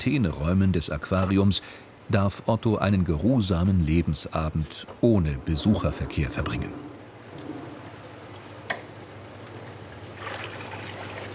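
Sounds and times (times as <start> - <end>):
speech: 0.0 - 6.9
water pouring into an aquarium tank: 10.0 - 11.3.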